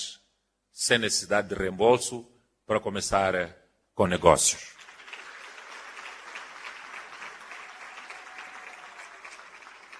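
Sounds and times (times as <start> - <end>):
speech: 0.8 - 4.8
audience applause: 4.8 - 9.9.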